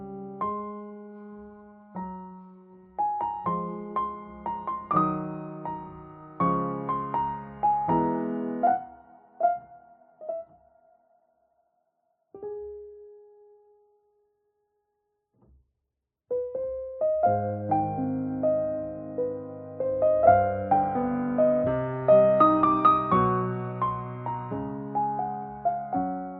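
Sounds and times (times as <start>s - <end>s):
piano cover: 0.0s - 10.6s, 16.3s - 26.3s.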